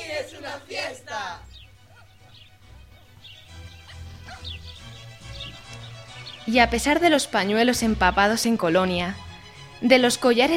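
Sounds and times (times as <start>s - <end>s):
dogs barking and yipping while playing with children in palace gardens: 1.4s - 6.5s
speech: 6.5s - 9.2s, 9.8s - 10.5s.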